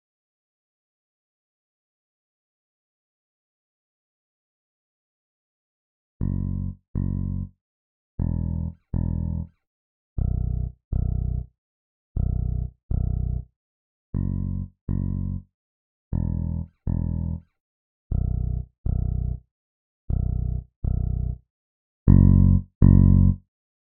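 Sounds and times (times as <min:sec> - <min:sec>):
bass: 0:06.2 - 0:07.6, 0:08.2 - 0:09.6, 0:10.2 - 0:11.5, 0:12.2 - 0:13.5, 0:14.1 - 0:15.5, 0:16.1 - 0:17.5, 0:18.1 - 0:19.5, 0:20.1 - 0:21.4, 0:22.1 - 0:23.5.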